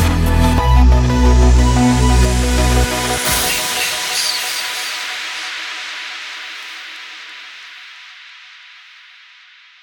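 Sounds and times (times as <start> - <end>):
chill synths: 0.0 - 5.0.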